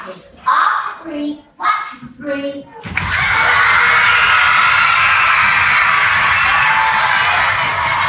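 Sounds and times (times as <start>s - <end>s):
speech: 0.0s - 2.9s
audience clapping: 2.9s - 8.0s.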